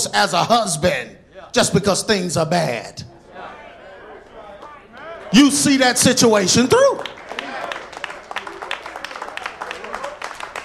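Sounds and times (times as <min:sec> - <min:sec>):
speech: 0:00.0 - 0:03.1, 0:05.3 - 0:07.2
audience hand clapping: 0:06.7 - 0:10.6.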